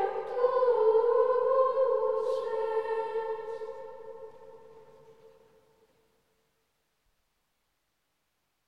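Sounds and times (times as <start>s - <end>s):
Ambrosian Gregorian chant: 0.0s - 5.5s.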